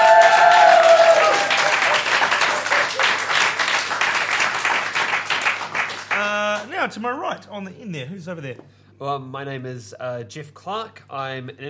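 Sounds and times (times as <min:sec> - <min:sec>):
audience round of applause: 0:00.0 - 0:06.6
speech: 0:06.8 - 0:11.6.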